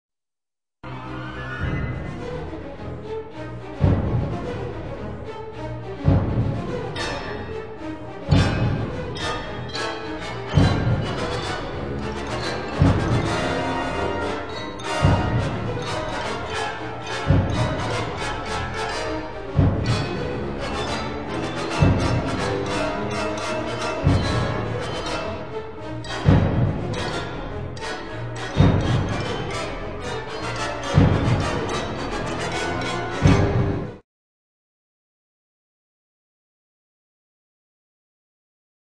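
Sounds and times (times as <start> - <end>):
brass instruments: 0.8 - 34.0
percussion: 3.8 - 5.2, 6.0 - 34.0.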